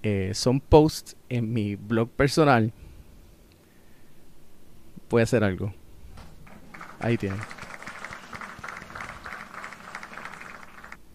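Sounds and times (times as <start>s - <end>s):
speech: 0.0s - 2.8s, 5.1s - 5.8s, 7.0s - 7.6s
crowd applauding: 6.2s - 11.0s.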